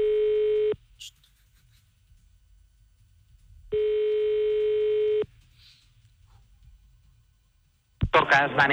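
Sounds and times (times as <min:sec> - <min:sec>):
ringback tone of a phone call to a business in Tarragona: 0:00.0 - 0:00.8, 0:03.7 - 0:05.2
speech: 0:08.2 - 0:08.7.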